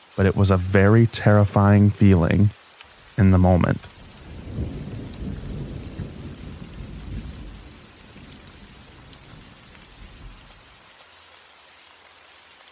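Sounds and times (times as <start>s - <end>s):
steady rain pattering: 0.0s - 12.6s
speech: 0.2s - 2.6s, 3.2s - 4.0s
low thunder rumbling: 3.0s - 10.8s.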